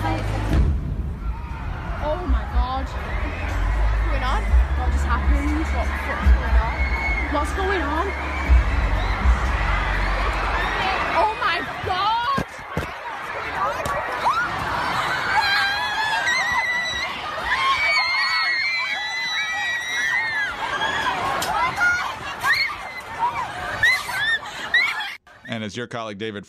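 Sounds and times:
panicked crowd of young people screaming during the Manchester attack: 0.0s - 25.2s
people talking and yelling: 0.0s - 25.5s
speech: 7.3s - 8.6s, 25.8s - 26.4s
laughter: 21.0s - 25.2s.

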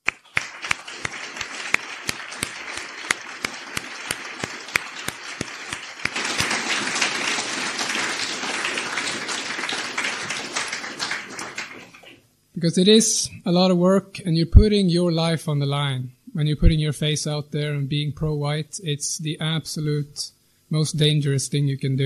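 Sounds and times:
audience applause: 0.0s - 12.2s
speech: 12.6s - 22.0s.

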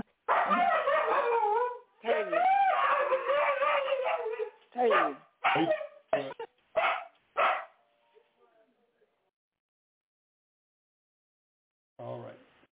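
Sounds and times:
dog barking: 0.3s - 6.0s, 6.8s - 7.8s
dog howl-like whining: 0.3s - 6.0s.

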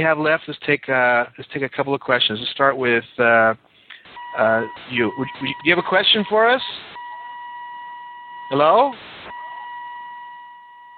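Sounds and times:
speech: 0.0s - 3.7s, 4.3s - 6.9s, 8.5s - 9.4s
car door warning beeper: 4.2s - 10.9s.

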